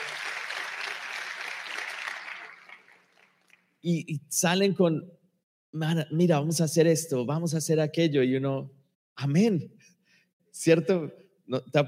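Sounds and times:
audience applause: 0:00.0 - 0:03.7
speech: 0:03.8 - 0:09.8, 0:10.6 - 0:11.8.

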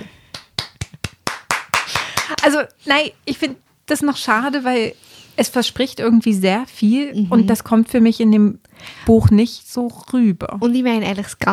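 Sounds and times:
audience hand claps: 0:00.3 - 0:02.6
speech: 0:02.4 - 0:11.5.

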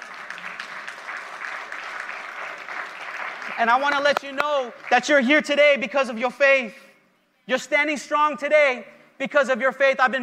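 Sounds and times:
audience applause: 0:00.0 - 0:05.2
speech: 0:03.6 - 0:06.8, 0:07.5 - 0:10.2.

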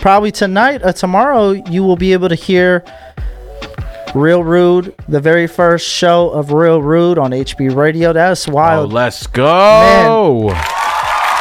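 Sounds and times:
speech: 0:00.0 - 0:03.2, 0:04.1 - 0:10.8
crowd cheering: 0:09.7 - 0:11.3.

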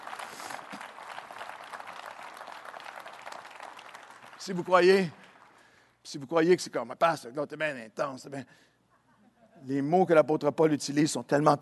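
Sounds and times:
audience applause: 0:00.0 - 0:05.8
speech: 0:04.4 - 0:05.2, 0:06.0 - 0:08.7, 0:09.6 - 0:11.6.

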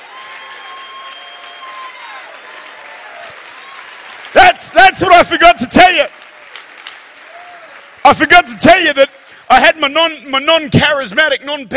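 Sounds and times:
high cheers and whistle-like cries: 0:00.0 - 0:09.2
crowd clapping: 0:00.0 - 0:09.9
speech: 0:05.0 - 0:06.2, 0:08.1 - 0:11.7.

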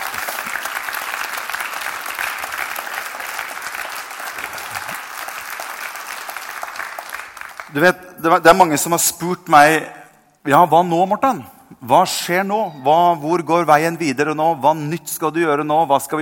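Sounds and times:
audience applause: 0:00.0 - 0:07.8
speech: 0:07.7 - 0:16.2.

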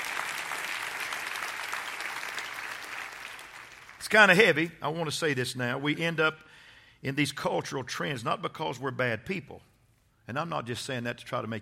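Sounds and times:
audience clapping hands: 0:00.0 - 0:04.2
speech: 0:04.0 - 0:09.7, 0:10.3 - 0:11.5.

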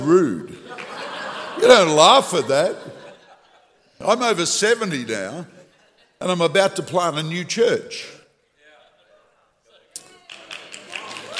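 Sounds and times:
speech: 0:00.0 - 0:00.6, 0:01.6 - 0:03.0, 0:04.0 - 0:05.6, 0:06.2 - 0:08.2
laughter: 0:00.4 - 0:07.0, 0:08.6 - 0:11.3
audience clapping: 0:10.0 - 0:11.3.

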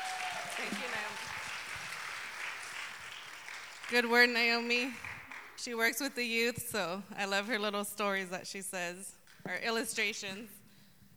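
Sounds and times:
audience applause: 0:00.0 - 0:05.6
speech: 0:03.9 - 0:10.6.

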